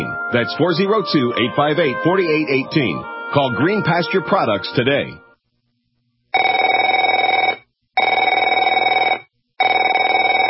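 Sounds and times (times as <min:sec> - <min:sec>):
speech: 0:00.0 - 0:05.2
telephone ringing: 0:06.3 - 0:10.4.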